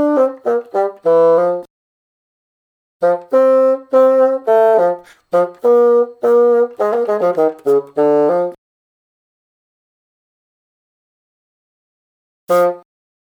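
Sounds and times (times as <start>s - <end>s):
bassoon imitating a baby elephant: 0.0s - 1.7s, 3.0s - 8.6s, 12.5s - 12.8s.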